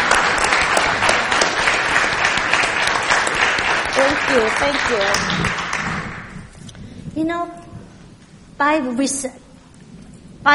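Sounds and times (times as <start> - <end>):
audience applause: 0.0 - 6.4
speech: 4.3 - 5.6, 7.2 - 7.6, 8.6 - 9.4.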